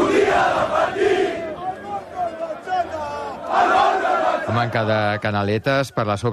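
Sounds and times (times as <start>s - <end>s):
Barça football fans celebrating in Plaça Catalunya in Barcelona: 0.0s - 5.8s
speech: 4.6s - 6.3s.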